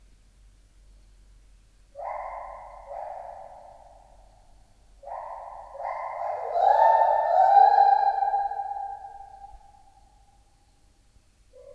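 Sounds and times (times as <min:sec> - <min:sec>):
white-handed gibbon song of swooping hoots: 0:06.5 - 0:09.1.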